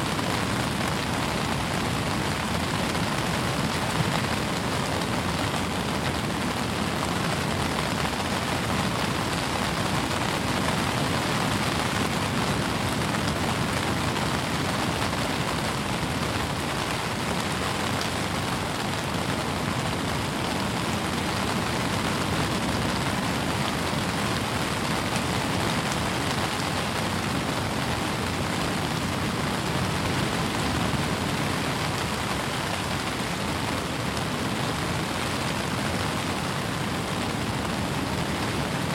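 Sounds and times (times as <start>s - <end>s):
rain: 0.0s - 38.9s.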